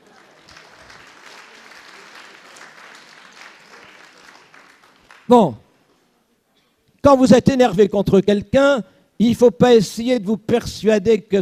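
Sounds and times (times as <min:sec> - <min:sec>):
audience applause: 0:00.0 - 0:05.3
speech: 0:05.3 - 0:05.6, 0:07.0 - 0:11.4.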